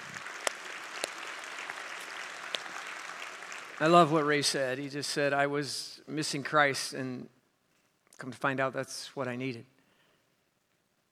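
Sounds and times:
audience applause: 0.0s - 4.8s
speech: 3.8s - 7.4s, 8.2s - 9.7s.

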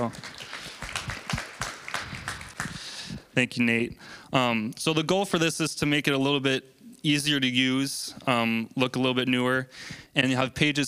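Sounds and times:
speech: 0.0s - 0.4s, 3.4s - 10.8s
round of applause: 0.0s - 3.2s.

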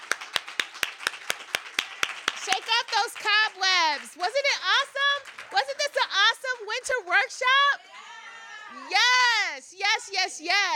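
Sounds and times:
hand claps: 0.0s - 6.0s
speech: 3.0s - 7.9s, 8.7s - 10.7s.

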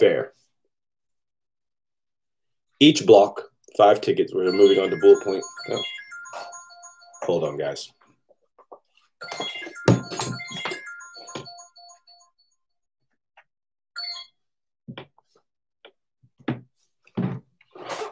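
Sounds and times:
speech: 2.8s - 6.5s, 7.2s - 8.0s
phone alarm melody: 4.5s - 7.7s, 9.2s - 12.6s.

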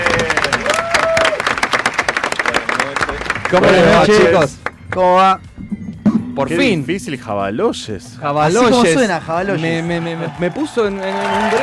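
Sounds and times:
whistles and cheers: 0.0s - 1.8s, 9.6s - 11.6s
crowd clapping: 0.0s - 5.1s, 9.8s - 11.6s
speech: 3.5s - 5.5s, 6.4s - 11.6s.

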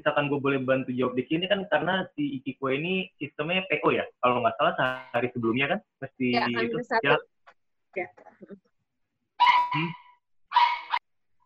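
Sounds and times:
speech: 0.0s - 7.3s, 7.9s - 8.7s, 9.4s - 10.7s
dog barking: 9.4s - 11.0s.

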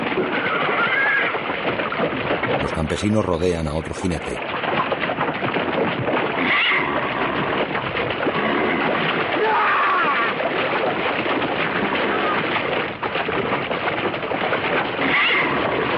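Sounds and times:
horse hoofbeats while dragging a rider caught in the stirrup: 0.0s - 15.9s
horse whinny: 0.3s - 1.4s, 6.4s - 10.4s, 11.7s - 12.6s, 15.0s - 15.9s
speech: 2.8s - 4.6s.

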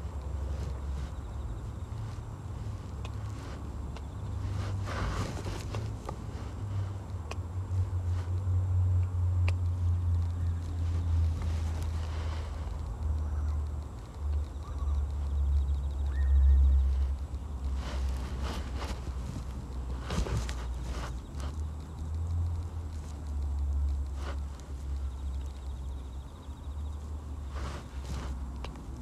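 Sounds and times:
grass rustling as it is pulled from a carrot patch: 0.0s - 29.0s
steady low rumble: 0.0s - 29.0s.

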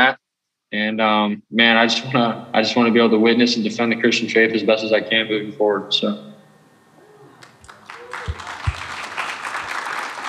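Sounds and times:
speech: 0.7s - 6.3s
audience applause: 7.4s - 10.2s.

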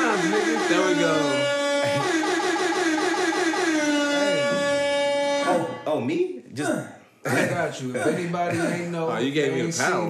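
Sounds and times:
brassy air horn sound effect blaring in bursts: 0.0s - 5.8s
speech: 6.0s - 10.0s.

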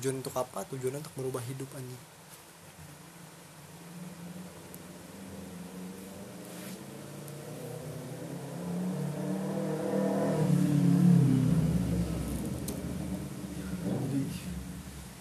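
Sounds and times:
speech: 0.0s - 2.2s
Ninja sport motorcycle engine revving past: 3.7s - 15.1s.

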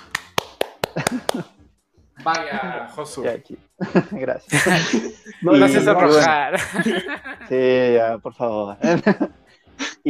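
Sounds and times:
hand claps: 0.0s - 1.5s
speech: 1.1s - 1.6s, 2.2s - 9.4s
voice or laughter: 3.9s - 7.5s.

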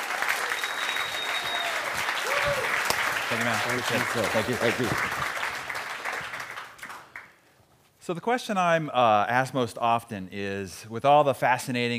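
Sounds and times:
audience clapping to welcome a speaker onto a stage: 0.0s - 7.4s
speech: 3.3s - 5.4s, 8.1s - 11.9s.

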